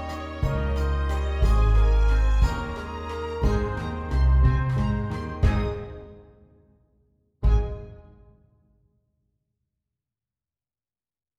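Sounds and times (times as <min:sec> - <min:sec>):
waltz instrumental: 0:00.0 - 0:06.4, 0:07.4 - 0:08.3.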